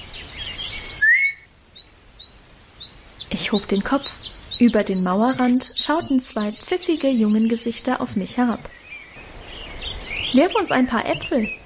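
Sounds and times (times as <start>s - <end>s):
soft but sharp whistle: 1.0s - 1.4s
speech: 3.4s - 8.8s, 10.3s - 11.6s.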